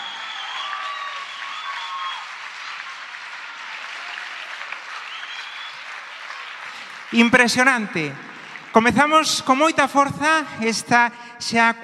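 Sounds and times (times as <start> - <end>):
audience applause: 0.0 - 9.2
speech: 7.1 - 11.8.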